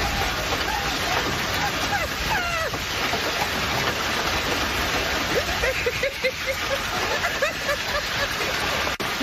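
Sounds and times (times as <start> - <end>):
woman laughing: 0.0 - 2.8, 5.3 - 9.2
hail pelting a car: 0.0 - 9.2.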